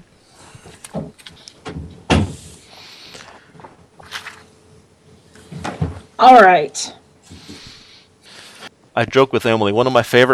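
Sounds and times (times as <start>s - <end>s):
door closing: 0.9s - 2.5s
speech: 6.2s - 7.0s, 9.0s - 10.3s.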